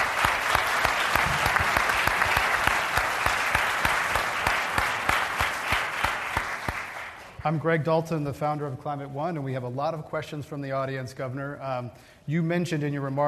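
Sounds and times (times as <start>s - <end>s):
audience applause at a Climate One event: 0.0s - 7.4s
speech: 7.4s - 13.2s.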